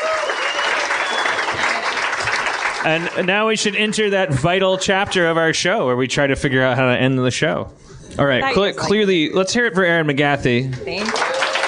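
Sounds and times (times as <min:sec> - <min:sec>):
faint whoops: 0:00.0 - 0:01.8
audience applause: 0:00.0 - 0:04.2, 0:10.8 - 0:11.6
speech: 0:02.8 - 0:11.2.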